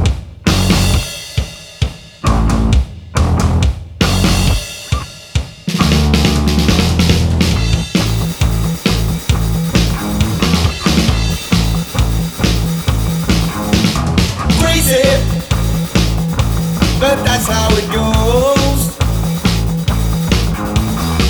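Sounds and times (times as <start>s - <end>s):
rock guitar backing track: 0.0s - 1.4s, 2.2s - 21.2s
person singing: 14.5s - 15.6s, 16.9s - 19.1s.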